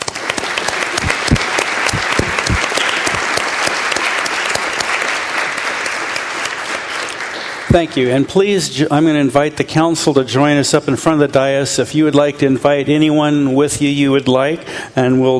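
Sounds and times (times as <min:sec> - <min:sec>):
crowd round of applause: 0:00.0 - 0:08.2
speech: 0:07.7 - 0:15.3.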